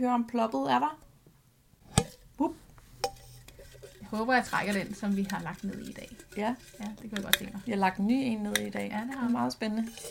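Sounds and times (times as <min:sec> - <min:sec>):
speech: 0:00.0 - 0:01.1, 0:02.4 - 0:02.6, 0:04.1 - 0:10.1
tin of topic slips being shaken: 0:03.2 - 0:10.1.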